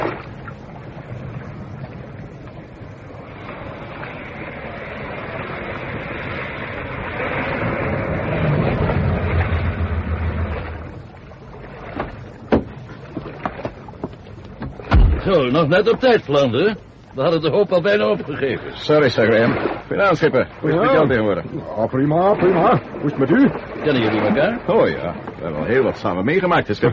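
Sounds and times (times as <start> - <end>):
car approaching: 7.6 - 11.9
speech: 15.3 - 26.9.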